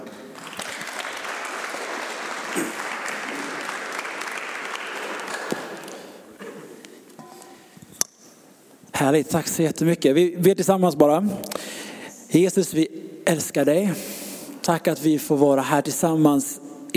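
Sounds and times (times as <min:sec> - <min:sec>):
audience applause: 0:00.0 - 0:06.2
speech: 0:09.0 - 0:16.9.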